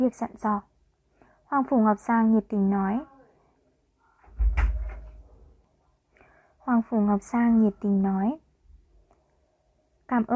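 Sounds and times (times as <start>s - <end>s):
speech: 0.0s - 0.7s, 1.5s - 3.1s, 6.7s - 8.4s, 10.1s - 10.3s
stone door closing: 4.3s - 5.2s.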